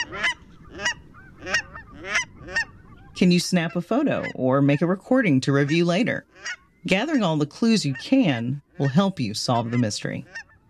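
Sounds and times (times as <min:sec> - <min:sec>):
cackling goose nasal yelps: 0:00.0 - 0:04.4, 0:05.6 - 0:06.9, 0:08.7 - 0:10.6
speech: 0:03.2 - 0:10.5.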